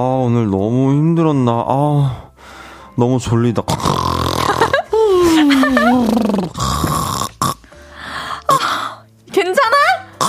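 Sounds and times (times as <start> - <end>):
speech: 0.0 - 2.2, 3.0 - 4.0
person snoring: 3.7 - 9.0.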